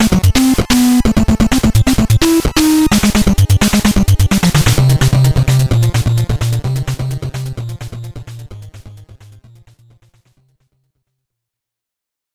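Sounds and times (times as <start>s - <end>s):
boss fight music: 0.0s - 9.8s.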